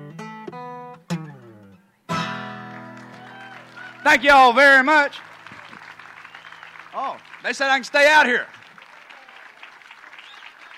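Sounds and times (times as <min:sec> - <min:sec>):
audience applause: 0:02.6 - 0:10.7
speech: 0:04.0 - 0:05.3, 0:07.0 - 0:08.6.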